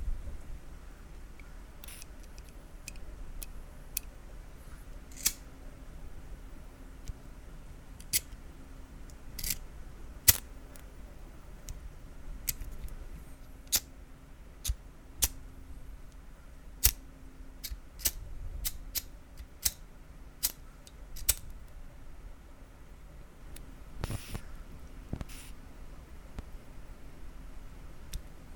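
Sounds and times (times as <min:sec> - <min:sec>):
soft steady hiss: 0:00.0 - 0:28.5
lighter metal parts clicking in ASMR: 0:01.8 - 0:04.1, 0:05.1 - 0:05.4, 0:10.3 - 0:10.5, 0:13.7 - 0:13.9, 0:14.6 - 0:15.4, 0:17.6 - 0:19.8, 0:20.4 - 0:21.5.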